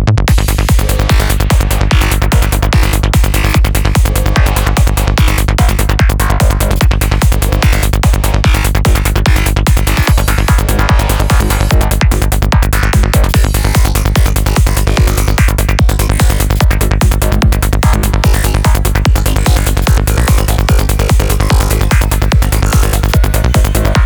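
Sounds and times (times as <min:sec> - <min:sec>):
EDM psytrance music: 0:00.2 - 0:24.0.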